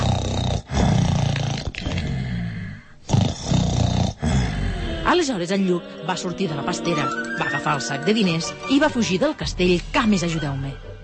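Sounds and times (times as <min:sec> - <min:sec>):
giant's loud snoring: 0:00.0 - 0:05.2
speech: 0:05.1 - 0:10.9.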